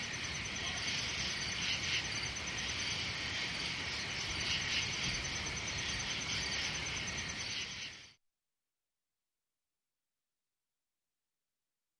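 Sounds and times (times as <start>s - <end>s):
country night forest ambience: 0.0s - 8.2s.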